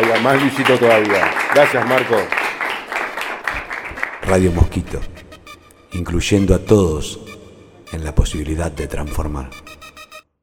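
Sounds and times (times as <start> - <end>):
group applause: 0.0 - 5.5
speech: 0.1 - 2.4, 4.2 - 5.1, 5.9 - 7.3, 7.9 - 9.8.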